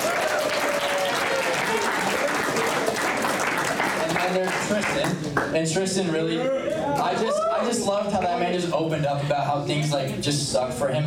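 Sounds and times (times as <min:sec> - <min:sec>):
audience applause: 0:00.0 - 0:05.4
speech: 0:04.4 - 0:11.0.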